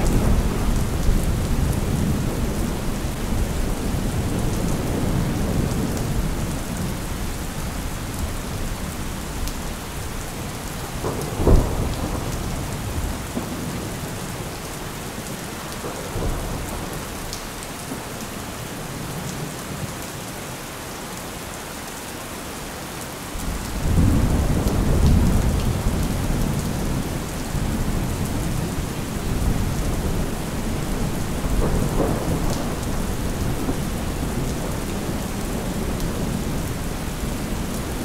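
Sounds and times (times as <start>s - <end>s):
thunder: 0.0s - 6.7s, 10.8s - 13.9s, 23.4s - 38.0s
rain: 0.0s - 38.0s.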